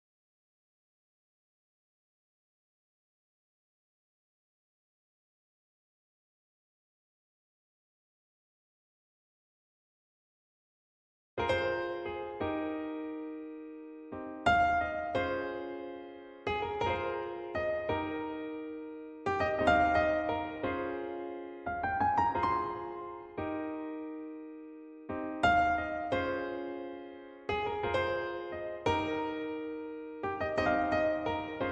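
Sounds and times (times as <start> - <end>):
piano: 11.4 - 31.7.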